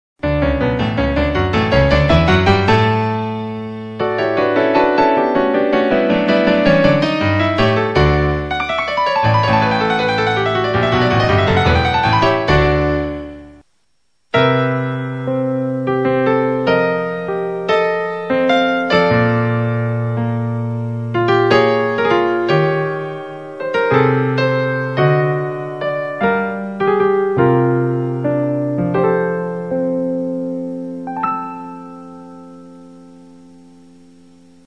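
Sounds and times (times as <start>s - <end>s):
piano: 0.2s - 34.6s.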